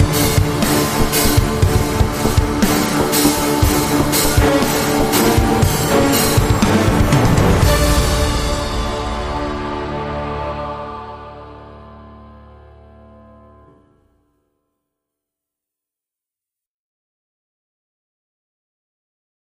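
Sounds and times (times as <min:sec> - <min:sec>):
dark orchestral music: 0:00.0 - 0:13.8.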